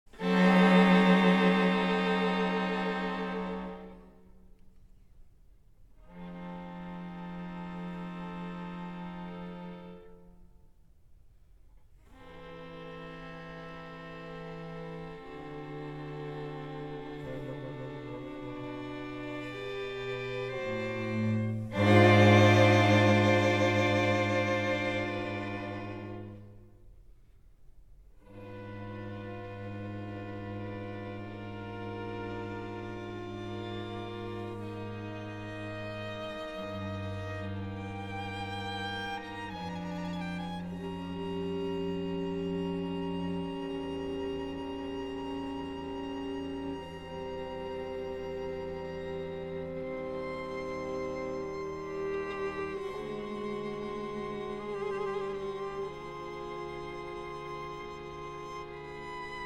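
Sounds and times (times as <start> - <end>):
string quartet playing: 0.1 - 4.9, 5.9 - 10.6, 12.0 - 27.1, 28.2 - 59.4.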